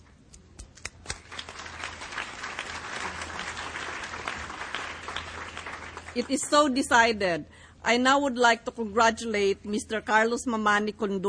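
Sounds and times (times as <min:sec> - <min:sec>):
audience applause at a forum approving an election by acclamation: 0:00.6 - 0:06.8
speech: 0:06.2 - 0:11.2.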